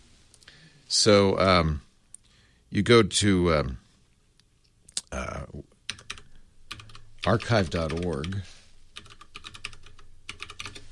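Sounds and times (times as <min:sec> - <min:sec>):
speech: 0:00.9 - 0:01.9, 0:02.7 - 0:03.8, 0:07.2 - 0:08.6
typing a domain name on archive.org on a computer keyboard: 0:05.9 - 0:08.4, 0:09.0 - 0:10.9.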